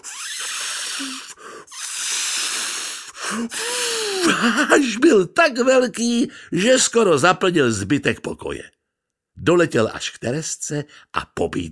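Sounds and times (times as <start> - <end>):
squeaky balloon stretching tones: 0.0 - 3.0
balloon slowly inflating with hissing air: 0.0 - 4.2
speech: 1.0 - 1.5, 3.3 - 8.8, 9.4 - 11.7.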